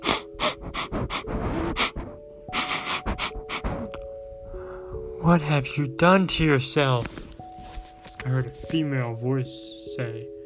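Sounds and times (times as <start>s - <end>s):
animal snuffling: 0.0s - 4.1s
speech: 5.3s - 7.2s, 8.2s - 10.4s.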